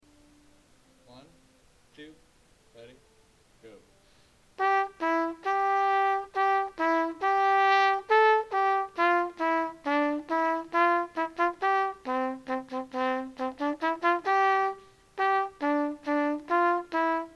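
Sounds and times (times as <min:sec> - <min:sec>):
simple melody in C major: 0:00.0 - 0:17.3.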